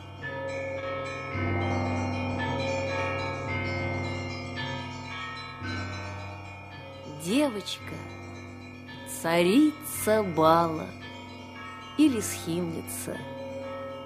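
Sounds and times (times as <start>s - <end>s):
church bells ringing: 0.0s - 14.0s
speech: 7.2s - 8.2s, 9.2s - 11.0s, 12.0s - 13.3s.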